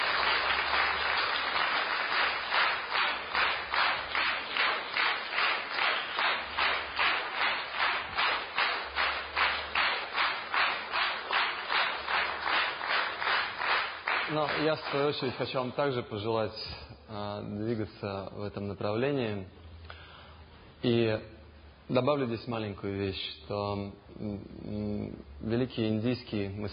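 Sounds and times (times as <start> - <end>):
crowd applauding in rhythm: 0.0 - 15.7
speech: 14.4 - 19.6, 20.8 - 21.3, 21.9 - 26.7.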